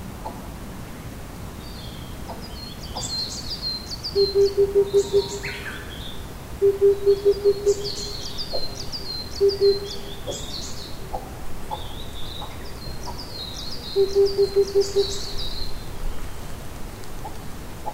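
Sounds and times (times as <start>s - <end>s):
Oriental cuckoo calling: 4.1s - 5.9s, 6.6s - 10.5s, 14.0s - 15.3s.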